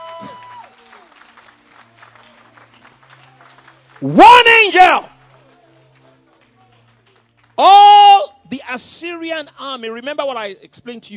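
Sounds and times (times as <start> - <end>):
whoops: 0.0 - 1.1
audience clapping in a large hall: 0.0 - 7.8
speech: 4.0 - 5.1, 7.6 - 7.8, 8.7 - 11.1.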